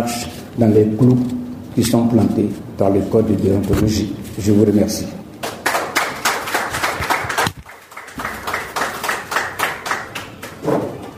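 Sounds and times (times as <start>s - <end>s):
speech: 0.0s - 5.2s
audience applause: 5.4s - 10.6s.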